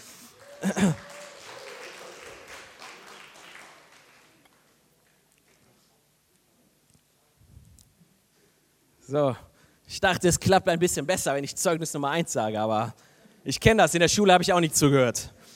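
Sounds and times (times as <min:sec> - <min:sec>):
audience applause: 0:00.0 - 0:04.8
speech: 0:00.6 - 0:01.1, 0:09.1 - 0:15.5.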